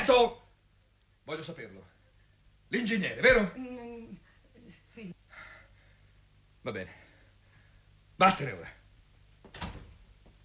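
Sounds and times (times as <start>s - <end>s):
speech: 0.1s - 0.4s, 1.3s - 2.0s, 2.7s - 4.2s, 5.0s - 5.2s, 6.6s - 7.0s, 8.2s - 8.8s
door closing: 9.4s - 10.0s.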